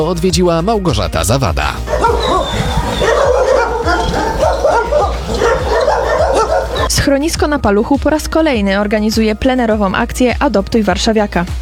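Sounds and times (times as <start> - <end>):
speech: 0.0 - 2.4, 6.9 - 11.6
dogs barking at an animal shelter: 1.7 - 7.0.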